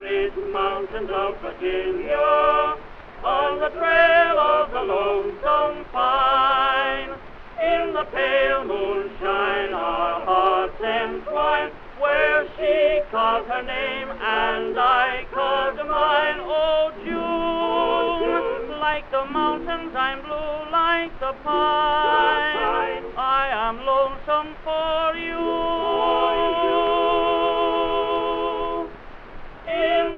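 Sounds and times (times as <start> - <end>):
tenor singing: 0.0 - 30.1.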